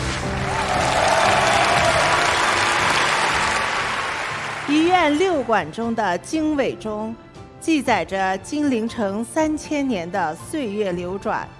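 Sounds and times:
audience applause: 0.0 - 5.3
speech: 5.0 - 11.5.

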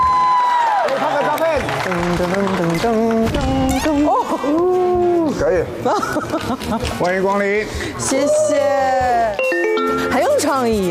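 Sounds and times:
audience applause: 0.1 - 3.3
speech: 1.6 - 9.4, 10.1 - 10.8.

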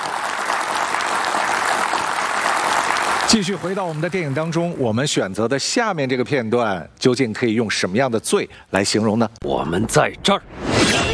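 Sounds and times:
audience applause: 0.0 - 4.8
speech: 3.3 - 11.0.

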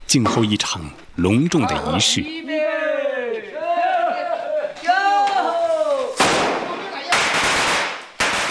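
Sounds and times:
speech: 0.1 - 2.5
several people shouting in long rising calls: 1.6 - 7.2
strings of firecrackers bursting: 4.7 - 8.4.

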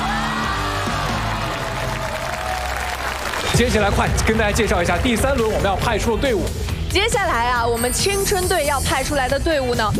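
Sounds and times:
audience applause: 0.0 - 6.0
speech: 3.6 - 9.9.

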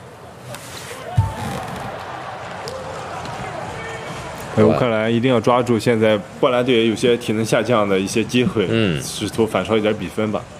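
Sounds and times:
crowd noise at a Poland vs Ukraine volleyball match: 0.0 - 10.5
volleyball serve thud in a Poland vs Ukraine match: 1.1 - 2.0
speech: 4.6 - 10.5.

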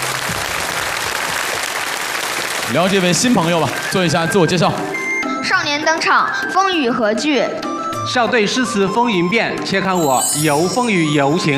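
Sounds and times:
audience applause on a children's poetry show: 0.0 - 5.0
speech: 2.7 - 11.5.

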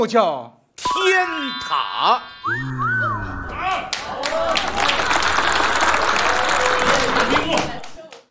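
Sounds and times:
speech: 0.0 - 3.0
audience applause: 3.9 - 8.3.

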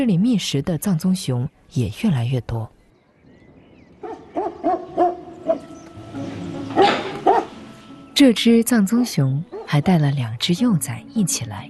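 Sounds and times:
speech: 0.0 - 2.8, 8.2 - 11.6
angry stray dogs barking: 4.0 - 7.8, 9.5 - 9.8.

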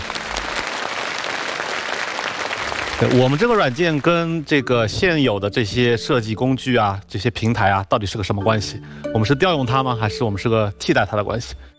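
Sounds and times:
audience applause at a software presentation: 0.0 - 4.6
speech: 3.0 - 11.7.

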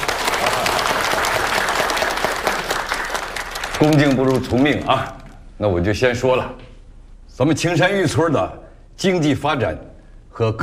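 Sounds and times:
audience applause: 0.0 - 5.2
speech: 3.8 - 6.6, 7.4 - 10.6.

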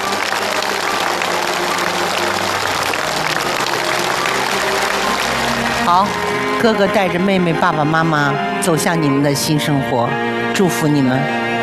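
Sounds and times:
studio audience applause: 0.0 - 7.6
speech: 5.9 - 11.4.

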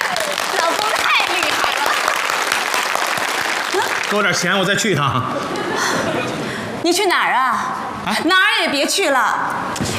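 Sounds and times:
crowd applauding: 0.0 - 4.8
speech: 4.1 - 9.9.

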